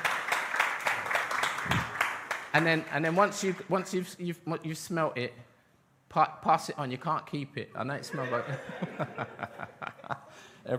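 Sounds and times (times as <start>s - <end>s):
audience applause: 0.0s - 3.2s
speech: 2.6s - 5.5s, 6.1s - 9.7s
laughter: 8.0s - 10.5s.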